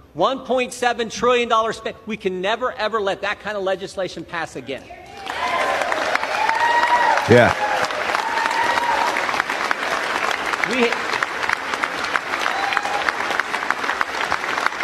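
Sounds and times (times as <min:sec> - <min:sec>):
speech: 0:00.2 - 0:05.3, 0:07.2 - 0:07.7, 0:10.7 - 0:11.0
audience cheering and applauding in chamber: 0:05.1 - 0:14.8.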